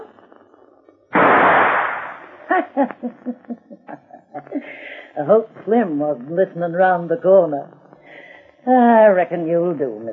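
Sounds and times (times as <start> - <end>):
gunshot shooting a key out of a door: 1.1 - 2.4
laughter: 2.5 - 4.8
speech: 2.5 - 7.8, 8.6 - 10.1.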